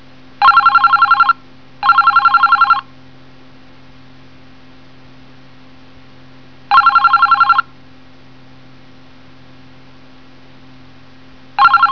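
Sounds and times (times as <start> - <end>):
telephone: 0.4 - 2.8, 6.7 - 7.7, 11.6 - 11.9.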